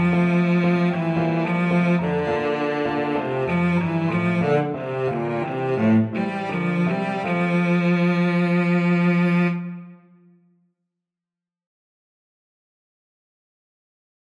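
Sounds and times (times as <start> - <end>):
violoncello: 0.0 - 10.4.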